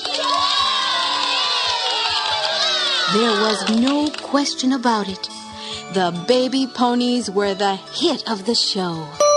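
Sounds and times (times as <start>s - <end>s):
excited children shouting and whooping: 0.0s - 3.7s
audience cheering after a dance performance on stage: 0.0s - 3.8s
speech: 3.1s - 9.2s.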